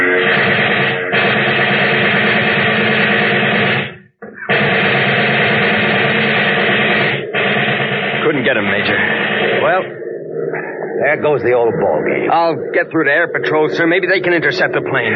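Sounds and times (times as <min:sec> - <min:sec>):
rapid submachine gun fire: 0:00.2 - 0:09.9
speech: 0:11.1 - 0:15.1.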